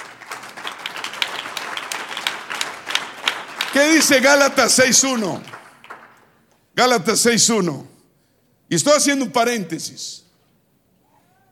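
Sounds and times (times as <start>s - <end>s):
audience applause: 0.0s - 6.4s
speech: 3.8s - 5.6s, 6.8s - 7.9s, 8.7s - 10.2s.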